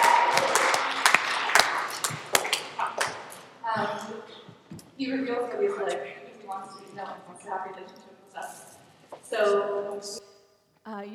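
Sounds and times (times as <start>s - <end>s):
audience applause: 0.0s - 3.6s
speech: 5.0s - 8.6s, 9.3s - 10.3s, 10.9s - 11.1s.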